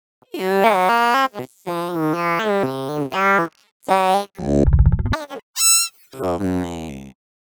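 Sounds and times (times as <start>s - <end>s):
circuit-bent voice sound: 0.4s - 7.2s.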